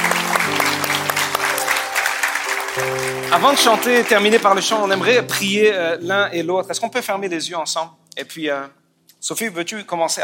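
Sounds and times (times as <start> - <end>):
audience applauding: 0.0 - 5.4
speech: 2.8 - 10.2.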